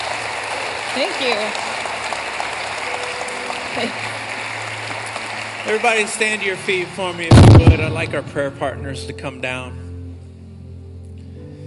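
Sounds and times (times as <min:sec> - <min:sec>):
audience clapping hands: 0:00.0 - 0:08.2
speech: 0:01.0 - 0:01.7, 0:03.8 - 0:04.1, 0:05.7 - 0:09.8.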